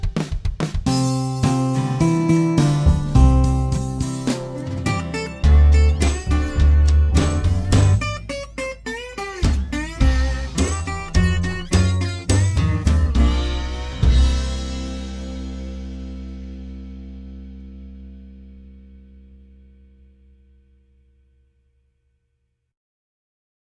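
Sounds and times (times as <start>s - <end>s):
slow ukulele song with intro: 0.9s - 18.1s.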